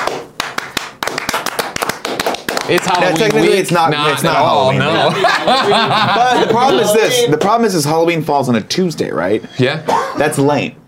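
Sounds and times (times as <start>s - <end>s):
hand clapping: 0.0s - 3.8s
speech: 2.7s - 10.8s
laughter: 3.0s - 7.3s.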